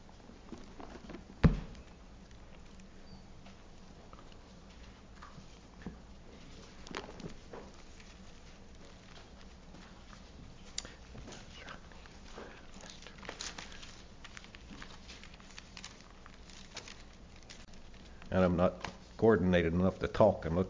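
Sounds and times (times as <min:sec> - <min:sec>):
Bible pages being turned: 0:06.4 - 0:19.2
speech: 0:18.4 - 0:20.6.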